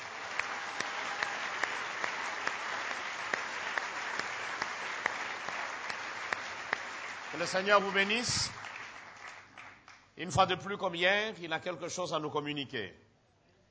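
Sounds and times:
church gathering applause welcoming its guest: 0:00.0 - 0:10.0
speech: 0:07.4 - 0:08.6, 0:10.2 - 0:13.0.

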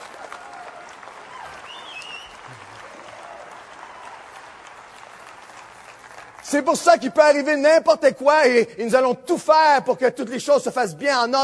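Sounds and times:
audience applauding: 0:00.0 - 0:07.5
speech: 0:06.5 - 0:11.4.

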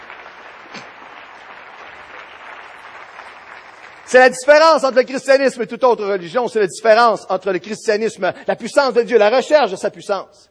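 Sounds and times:
audience applauding: 0:00.0 - 0:05.5
speech: 0:04.1 - 0:10.4.

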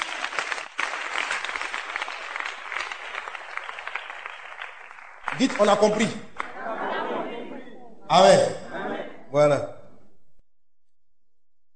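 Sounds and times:
church congregation applauding during a sermon: 0:00.0 - 0:07.1
speech: 0:05.4 - 0:06.3, 0:08.1 - 0:08.6, 0:09.3 - 0:09.8
laughter: 0:05.6 - 0:09.3.

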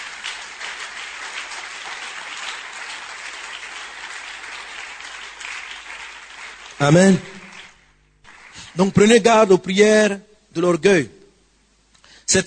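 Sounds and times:
church congregation applause during a French-language service: 0:00.0 - 0:09.3
speech: 0:06.8 - 0:07.3, 0:08.8 - 0:11.2, 0:12.3 - 0:12.4.

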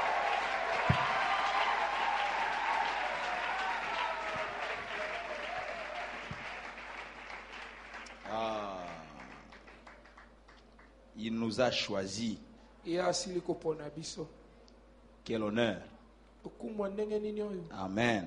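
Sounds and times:
audience cheering in worship: 0:00.0 - 0:08.8
audience applauding in worship: 0:00.0 - 0:10.9
speech: 0:11.2 - 0:14.4, 0:15.2 - 0:18.2.

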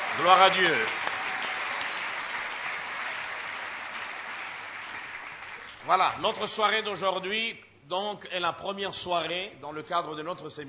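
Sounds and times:
congregation applauding at a church gathering: 0:00.0 - 0:06.6
speech: 0:00.2 - 0:01.1, 0:05.9 - 0:10.6.

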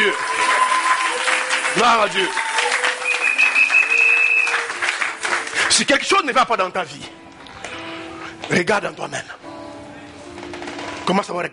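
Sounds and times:
congregation applause at a church service as praise to the Lord: 0:00.0 - 0:06.5
speech: 0:01.8 - 0:02.4, 0:05.8 - 0:07.2, 0:08.5 - 0:09.4, 0:11.1 - 0:11.5.

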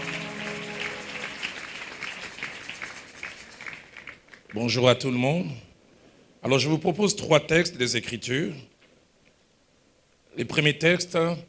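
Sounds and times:
church congregation applauding during a service: 0:00.0 - 0:04.8
speech: 0:04.5 - 0:05.7, 0:06.4 - 0:08.7, 0:10.4 - 0:11.4.

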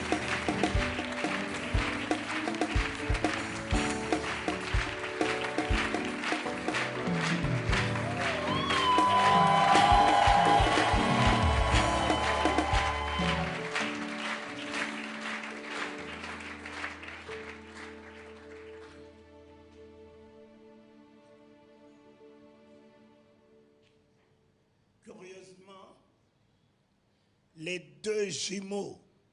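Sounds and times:
audience applauding: 0:00.0 - 0:19.3
crowd cheering and whooping: 0:07.7 - 0:14.0
speech: 0:28.3 - 0:29.0.

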